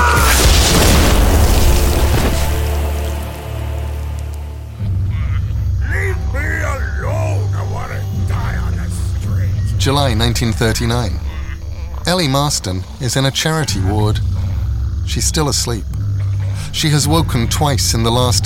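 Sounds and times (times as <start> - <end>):
explosion sound effect of a head blowing apart: 0.2 - 3.2
high tonal calls: 5.0 - 18.4
speech: 9.8 - 11.3, 12.0 - 14.4, 15.0 - 16.0, 16.6 - 18.4.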